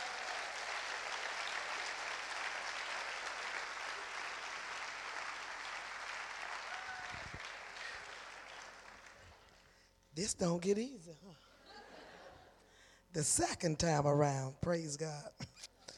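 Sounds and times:
audience applause: 0.0s - 9.6s
speech: 10.2s - 11.5s, 13.2s - 15.6s.

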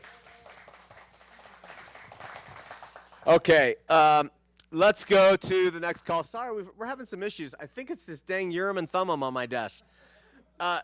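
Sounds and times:
audience applause: 0.0s - 3.4s
speech: 3.2s - 9.9s, 10.6s - 10.8s.

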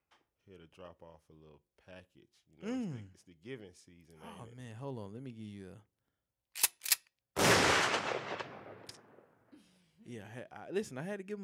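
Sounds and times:
speech: 0.5s - 6.0s, 10.1s - 11.4s
gunshot sound effect: 7.4s - 9.2s.

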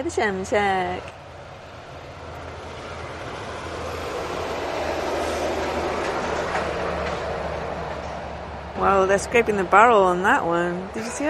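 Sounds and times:
speech: 0.0s - 1.2s, 8.8s - 11.2s
heavy logging truck driving past: 0.0s - 11.2s.

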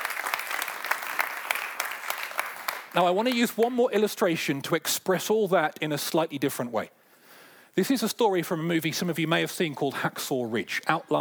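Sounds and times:
audience applause: 0.0s - 3.0s
speech: 3.0s - 7.0s, 7.8s - 11.1s.

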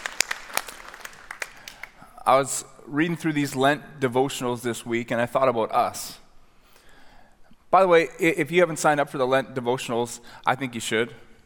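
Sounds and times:
audience clapping: 0.0s - 2.0s
speech: 2.3s - 6.2s, 7.7s - 11.2s.

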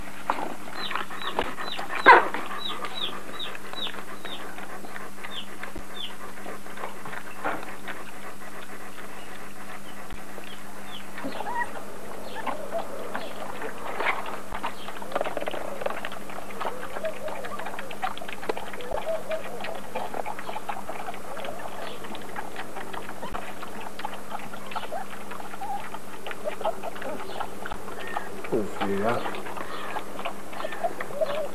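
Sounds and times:
chicks chirping: 0.4s - 7.6s, 8.5s - 31.5s.

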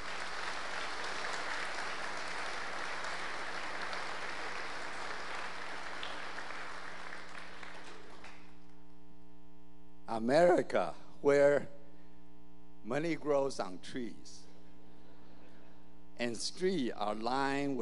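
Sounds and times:
audience applause welcoming the Yuan family at Parkview: 0.0s - 8.5s
mains hum: 0.0s - 17.8s
speech: 10.1s - 11.8s, 12.8s - 14.4s, 16.2s - 17.8s.

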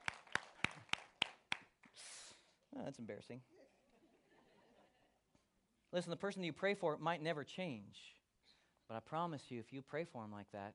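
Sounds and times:
single person clapping: 0.0s - 2.0s
speech: 2.8s - 3.6s, 5.9s - 8.2s, 8.9s - 10.7s
laughter: 3.5s - 5.2s.

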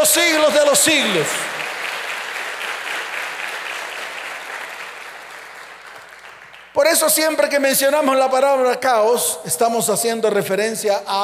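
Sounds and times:
speech: 0.0s - 1.5s, 6.8s - 11.2s
audience applauding: 0.0s - 6.9s.

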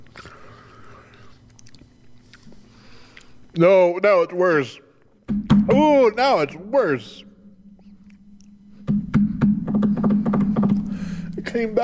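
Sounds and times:
person chewing a banana pecan snack: 0.0s - 3.5s, 7.8s - 8.8s
breathing: 0.1s - 1.4s, 2.6s - 3.5s, 8.7s - 11.4s
speech: 3.6s - 4.8s, 5.7s - 7.3s, 11.6s - 11.8s.

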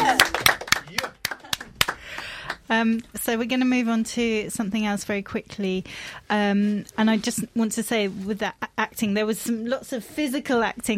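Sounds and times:
few people clapping in a studio: 0.0s - 2.7s
speech: 2.7s - 10.9s.

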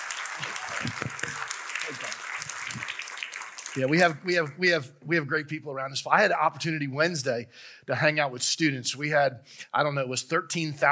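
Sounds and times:
audience applause: 0.0s - 4.6s
speech: 1.9s - 2.2s, 3.8s - 10.9s.

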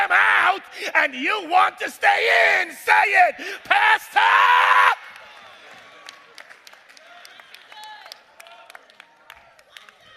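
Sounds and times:
speech: 0.8s - 5.0s
audience clapping: 5.0s - 10.1s.

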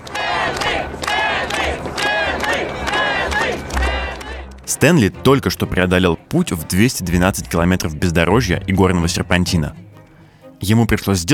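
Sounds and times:
crowd chanting at finish line: 0.0s - 4.7s
speech: 4.8s - 9.9s, 10.6s - 11.3s.

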